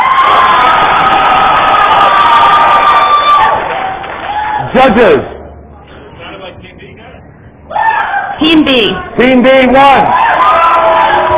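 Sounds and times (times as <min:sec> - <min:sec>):
crowd cheering and shouting for Team B at a judged team competition: 0:00.0 - 0:04.8, 0:07.7 - 0:11.3
speech: 0:04.8 - 0:05.3, 0:08.5 - 0:10.4.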